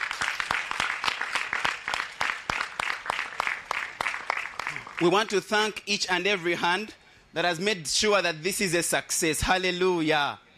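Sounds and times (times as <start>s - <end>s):
audience hand clapping: 0.0s - 5.8s
speech: 5.0s - 10.4s.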